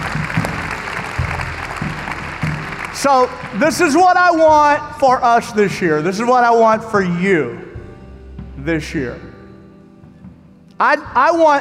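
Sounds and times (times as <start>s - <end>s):
church congregation clapping hands during a sermon: 0.0s - 5.4s
speech: 3.0s - 7.7s, 8.6s - 9.3s, 10.8s - 11.6s.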